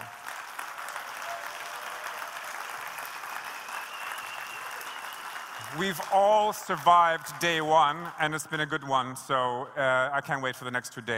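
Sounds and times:
audience clapping: 0:00.0 - 0:08.8
speech: 0:05.7 - 0:11.1.

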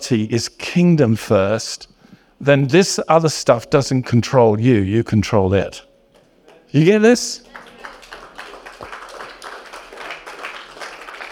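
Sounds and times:
speech: 0:00.1 - 0:05.9, 0:06.7 - 0:07.5
a few audience members clapping: 0:07.4 - 0:11.3.

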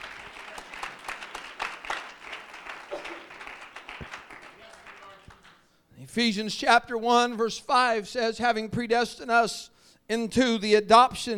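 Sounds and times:
audience clapping hands in praise: 0:00.0 - 0:05.7
speech: 0:06.1 - 0:11.3.

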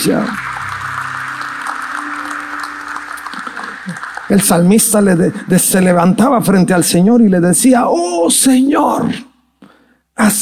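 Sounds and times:
speech: 0:00.0 - 0:00.5, 0:03.9 - 0:09.3, 0:10.2 - 0:10.4
audience applause: 0:00.0 - 0:06.6.

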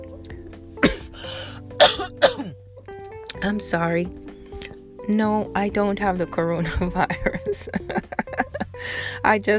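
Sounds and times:
person clearing food stuck in their throat: 0:00.8 - 0:01.2, 0:01.8 - 0:02.6
speech: 0:03.4 - 0:04.2, 0:05.1 - 0:08.0, 0:08.8 - 0:09.5.

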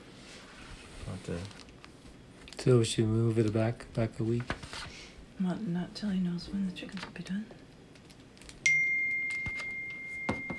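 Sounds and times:
speech: 0:01.1 - 0:01.6, 0:02.6 - 0:07.6
phone electronic high-pitched beep: 0:08.7 - 0:10.5.

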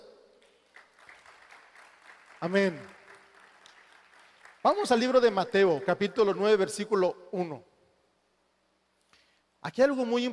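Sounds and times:
audience applause: 0:00.7 - 0:05.3
speech: 0:02.4 - 0:03.0, 0:04.6 - 0:07.7, 0:09.6 - 0:10.3.

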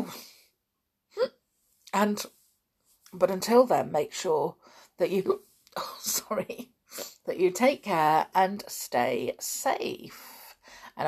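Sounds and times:
hiccup with vocal squeak: 0:01.2 - 0:01.4
speech: 0:02.0 - 0:02.4, 0:03.1 - 0:10.4.

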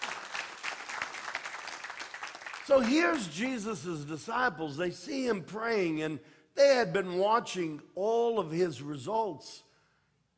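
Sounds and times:
audience applause: 0:00.0 - 0:02.9
speech: 0:02.7 - 0:09.7.

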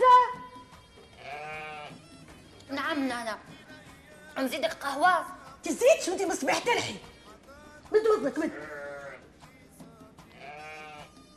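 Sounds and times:
Eid sheep bleating in studio: 0:01.0 - 0:02.2, 0:08.0 - 0:09.4, 0:10.2 - 0:11.3
speech: 0:03.0 - 0:03.7, 0:04.4 - 0:07.1, 0:07.9 - 0:08.8.

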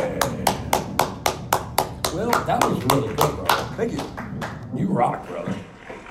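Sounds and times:
applause: 0:00.2 - 0:04.6
speech: 0:02.3 - 0:05.7.

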